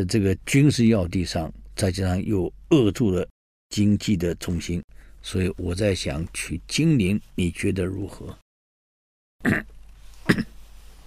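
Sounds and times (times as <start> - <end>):
speech: 0.0 - 8.4, 9.4 - 9.7
man coughing in a historical drama scene: 9.4 - 10.6.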